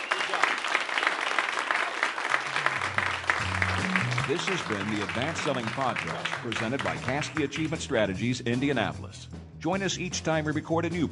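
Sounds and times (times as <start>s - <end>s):
live audience clapping: 0.0s - 8.2s
low voice speaking: 4.2s - 7.1s
speech: 4.3s - 11.1s.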